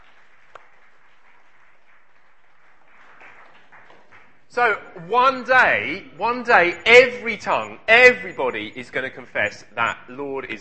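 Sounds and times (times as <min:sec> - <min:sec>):
round of applause: 0:00.0 - 0:04.8
speech: 0:04.5 - 0:10.5.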